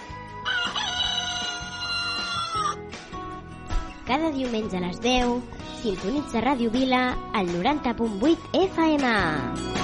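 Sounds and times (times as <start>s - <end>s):
rooster crowing as alarm clock: 0.3s - 2.8s
speech: 4.1s - 9.7s.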